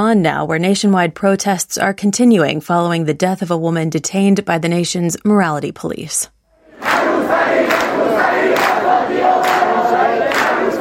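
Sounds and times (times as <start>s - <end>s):
speech: 0.0s - 10.2s
students chanting protest slogans at Tehran Polytechnic: 6.6s - 10.7s.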